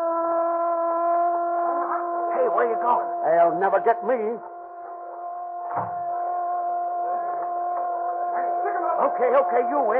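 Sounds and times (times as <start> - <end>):
prison siren blaring: 0.0 - 9.9
speech: 2.6 - 4.5, 5.7 - 6.0, 9.1 - 9.9.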